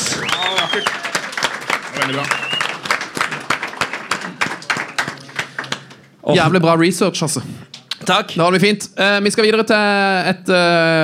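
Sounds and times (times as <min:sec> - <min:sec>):
applause: 0:00.0 - 0:06.1
speech: 0:02.0 - 0:02.5, 0:06.3 - 0:11.0.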